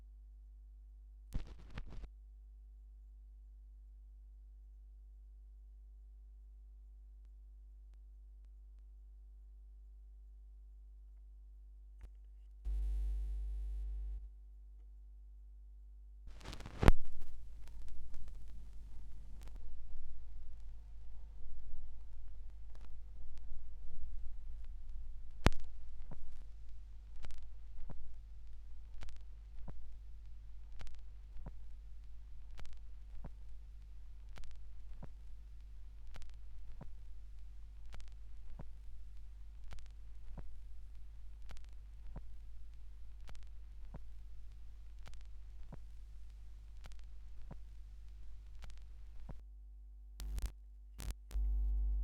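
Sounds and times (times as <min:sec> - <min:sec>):
vinyl record noise: 0:01.4 - 0:02.1, 0:12.7 - 0:14.2, 0:16.3 - 0:49.4, 0:50.2 - 0:51.9.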